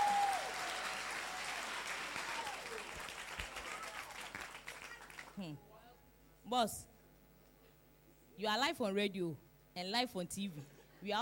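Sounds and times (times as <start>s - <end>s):
audience applause: 0.0s - 5.4s
speech: 5.4s - 5.7s, 6.4s - 6.9s, 8.4s - 11.1s.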